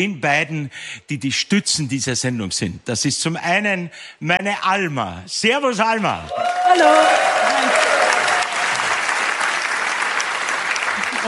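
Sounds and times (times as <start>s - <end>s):
speech: 0.0s - 8.0s
audience applause: 6.3s - 11.2s.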